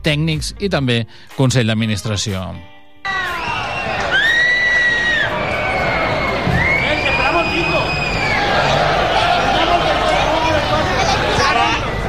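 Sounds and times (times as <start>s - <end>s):
speech: 0.0s - 2.8s
stadium crowd whistling in protest: 3.1s - 12.0s.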